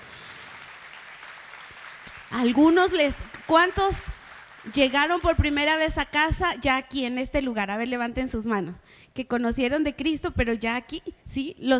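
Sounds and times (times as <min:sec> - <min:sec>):
audience applauding: 0:00.0 - 0:05.8
speech: 0:02.3 - 0:11.7.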